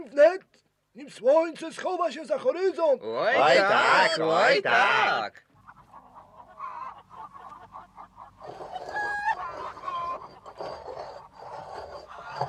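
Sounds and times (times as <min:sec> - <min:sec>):
speech: 0:01.0 - 0:05.5
farmyard chickens clucking: 0:05.5 - 0:12.4.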